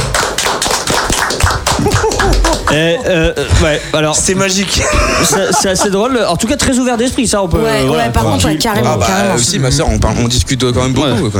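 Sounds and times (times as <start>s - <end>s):
group clapping: 0.0s - 3.3s
laughter: 1.7s - 6.4s
speech: 2.7s - 11.3s.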